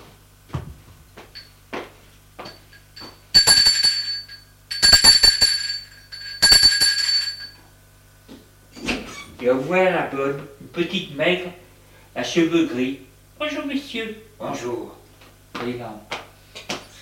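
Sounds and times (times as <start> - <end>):
apartment doorbell ringing in bright metallic bursts: 2.5 - 7.6
speech: 9.4 - 11.6, 12.2 - 15.0, 15.6 - 16.1.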